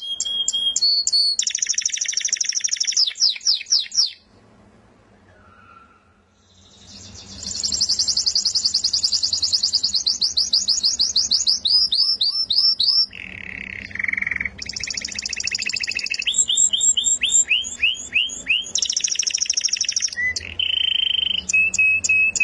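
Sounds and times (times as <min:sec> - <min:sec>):
contest-winning canary singing whistles and buzzy trill: 0:00.0 - 0:04.3, 0:05.3 - 0:22.4.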